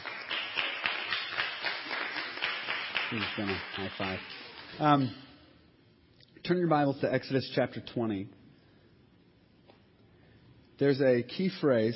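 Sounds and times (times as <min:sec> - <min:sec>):
audience clapping: 0:00.0 - 0:05.2
speech: 0:03.1 - 0:05.3, 0:06.4 - 0:08.4, 0:10.8 - 0:11.9.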